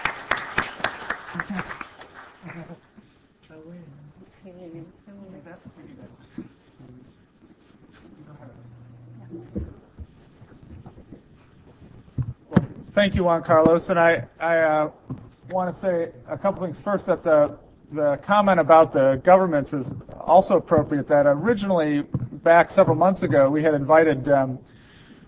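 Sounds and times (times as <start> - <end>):
audience applause: 0.0 - 2.7
speech: 13.0 - 24.8.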